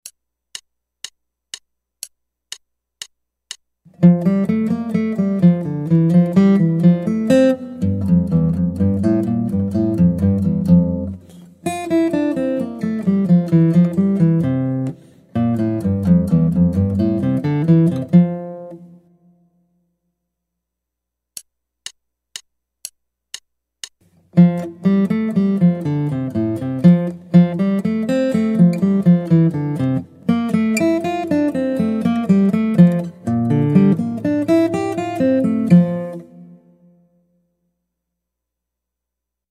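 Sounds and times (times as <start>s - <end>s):
guitar: 3.9s - 19.5s, 24.2s - 37.4s.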